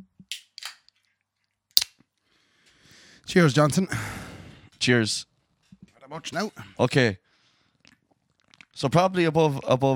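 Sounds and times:
drink cans being cracked open: 0:00.3 - 0:01.0, 0:01.8 - 0:02.0
speech: 0:03.2 - 0:04.2, 0:04.8 - 0:05.3, 0:06.1 - 0:07.2, 0:08.8 - 0:09.9.

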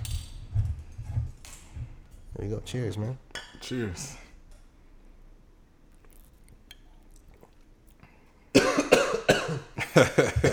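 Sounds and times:
speech: 0:02.4 - 0:04.2, 0:10.0 - 0:10.5
person coughing after a drink went down the wrong pipe: 0:08.5 - 0:10.5.

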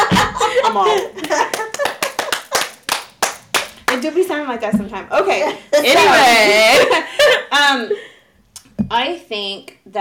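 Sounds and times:
laughter: 0:00.0 - 0:02.8, 0:05.4 - 0:08.0
speech: 0:00.7 - 0:01.2, 0:04.0 - 0:08.1, 0:08.9 - 0:09.9
hand clapping: 0:00.8 - 0:04.2.

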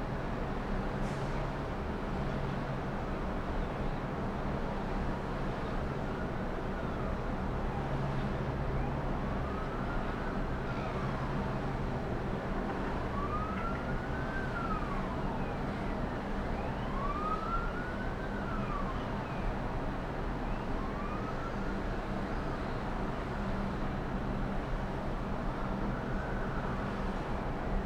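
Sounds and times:
Melbourne Docklands city traffic rumble from 29 floors up: 0:00.1 - 0:27.8
siren in Melbourne Docklands: 0:08.5 - 0:23.3, 0:25.4 - 0:27.4.

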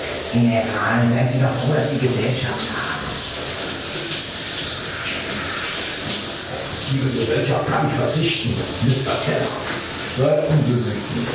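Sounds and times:
shower running: 0:00.0 - 0:11.3
speech: 0:00.3 - 0:02.8, 0:06.9 - 0:11.3.

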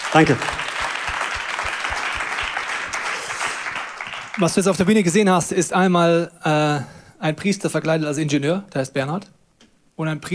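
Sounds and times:
audience applause: 0:00.0 - 0:05.1
speech: 0:00.1 - 0:00.6, 0:04.4 - 0:09.4, 0:10.0 - 0:10.3.

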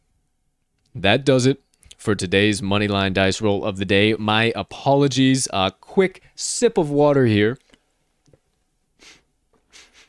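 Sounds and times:
speech: 0:01.0 - 0:07.6
person sniffling: 0:09.0 - 0:10.0.

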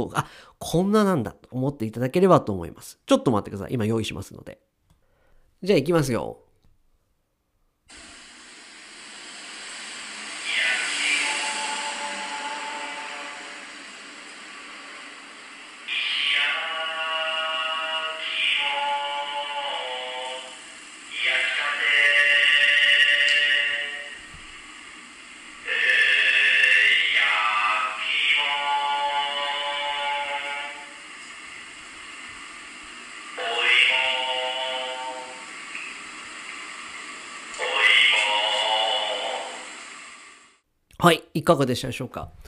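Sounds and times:
speech: 0:00.0 - 0:04.7, 0:05.6 - 0:06.4, 0:41.0 - 0:42.4
steady hiss: 0:00.0 - 0:42.4
roasted sweet potato vendor's sung advertising jingle: 0:10.4 - 0:13.7, 0:15.9 - 0:24.2, 0:25.6 - 0:31.0, 0:33.4 - 0:35.5, 0:37.6 - 0:39.6.

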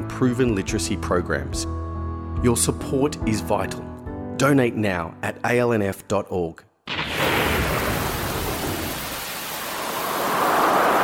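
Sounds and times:
speech: 0:00.2 - 0:01.8, 0:02.4 - 0:06.7
rain in a thunderstorm: 0:06.9 - 0:11.0
thunder rumbling: 0:06.9 - 0:11.0.

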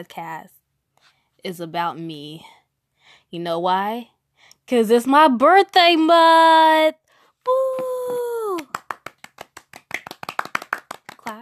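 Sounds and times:
speech: 0:00.0 - 0:08.2
hand clapping: 0:07.5 - 0:11.4.

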